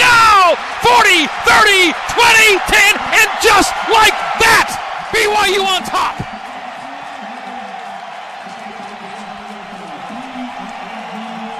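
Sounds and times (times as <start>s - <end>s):
stadium crowd cheering: 0.0s - 11.5s
speech: 1.0s - 6.4s.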